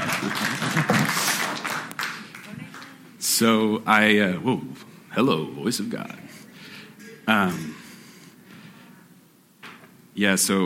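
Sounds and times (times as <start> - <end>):
audience at a church gathering applauding to welcome a speaker: 0.0 - 3.0
speech: 3.4 - 6.2, 7.3 - 7.7, 10.2 - 10.6.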